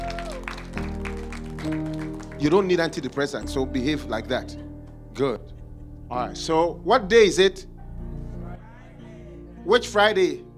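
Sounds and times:
audience clapping: 0:00.0 - 0:03.8
speech: 0:01.6 - 0:04.6, 0:05.2 - 0:05.5, 0:06.1 - 0:07.7, 0:09.6 - 0:10.5.

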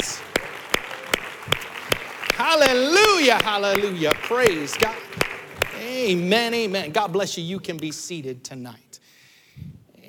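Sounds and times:
audience clapping hands: 0:00.0 - 0:07.2
speech: 0:02.5 - 0:05.0, 0:05.8 - 0:08.9.

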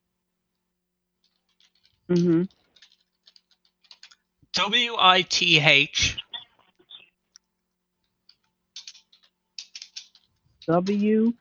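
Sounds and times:
typing a web address on a computer keyboard: 0:01.6 - 0:07.1, 0:08.2 - 0:11.4
speech: 0:02.1 - 0:02.6, 0:04.6 - 0:06.3, 0:10.7 - 0:11.4.

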